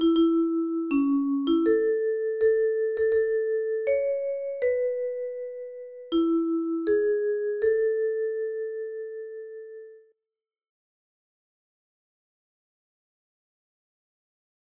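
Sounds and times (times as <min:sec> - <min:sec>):
vibraphone: 0:00.0 - 0:10.1.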